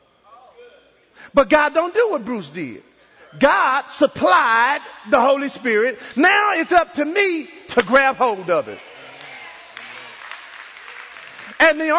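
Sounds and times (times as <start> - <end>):
speech: 1.3 - 8.9, 11.6 - 11.9
audience clapping: 8.7 - 11.9.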